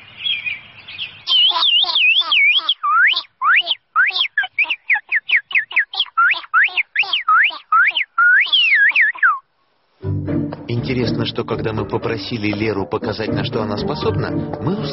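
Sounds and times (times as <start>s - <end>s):
girl imitating birdsong by singing: 1.3s - 9.5s
speech: 10.9s - 14.9s.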